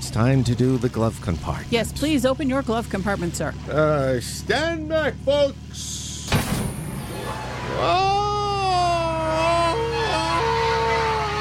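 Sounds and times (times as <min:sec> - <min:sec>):
speech: 0:00.1 - 0:06.0, 0:07.3 - 0:08.2
man imitating a Tarzan yell: 0:07.8 - 0:11.4.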